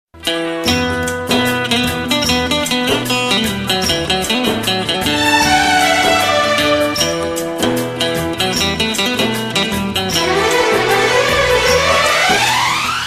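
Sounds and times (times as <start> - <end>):
romantic music: 0.5 - 13.0.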